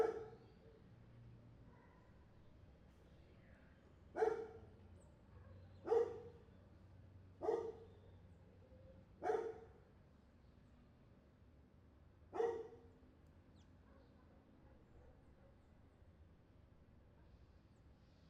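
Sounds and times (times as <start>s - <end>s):
street dog barking: 0.0s - 0.4s, 4.2s - 4.6s, 5.4s - 6.3s, 7.4s - 7.8s, 9.2s - 9.7s, 12.4s - 12.8s, 13.9s - 15.6s.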